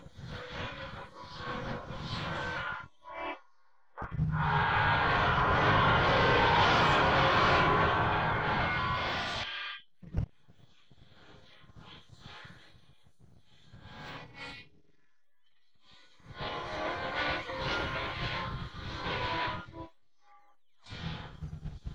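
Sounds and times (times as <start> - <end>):
guitar: 0.0 - 3.4, 4.0 - 9.6, 15.8 - 21.9.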